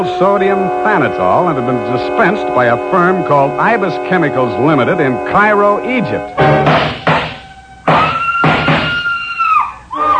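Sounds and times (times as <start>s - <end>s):
speech: 0.0s - 7.0s
high frenzied scream: 7.3s - 10.1s.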